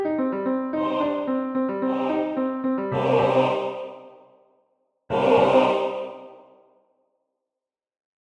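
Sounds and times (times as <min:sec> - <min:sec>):
piano: 0:00.0 - 0:04.2
SATB choir vocalise: 0:00.7 - 0:04.5, 0:05.1 - 0:06.8.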